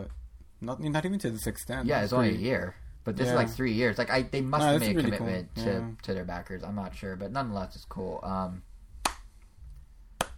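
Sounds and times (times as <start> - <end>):
speech: 0.0 - 8.7
slow clap: 9.0 - 9.4.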